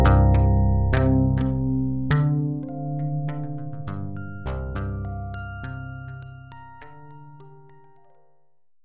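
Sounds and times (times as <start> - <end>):
modeling synthesizer loop: 0.0 - 5.9.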